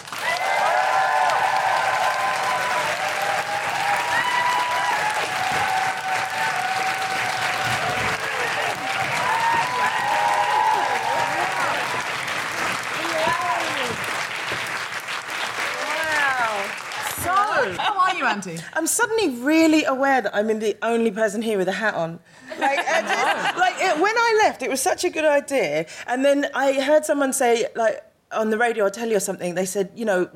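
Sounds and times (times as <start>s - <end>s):
audience applause: 0.0s - 18.1s
people woohooing: 0.2s - 12.1s
speech: 18.4s - 30.3s
laughter: 22.4s - 24.1s.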